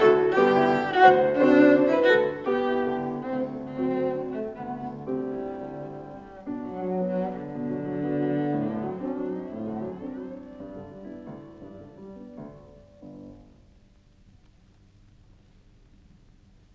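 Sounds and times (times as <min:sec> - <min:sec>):
violin: 0:00.0 - 0:13.2
piano: 0:00.0 - 0:16.7.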